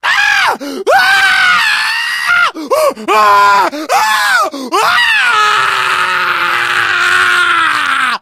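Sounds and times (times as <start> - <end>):
death scream: 0.0 - 8.2.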